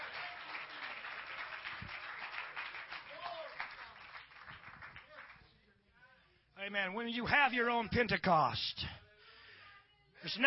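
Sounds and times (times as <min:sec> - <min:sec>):
audience clapping hands: 0:00.0 - 0:05.5
speech: 0:06.7 - 0:09.0, 0:10.2 - 0:10.4.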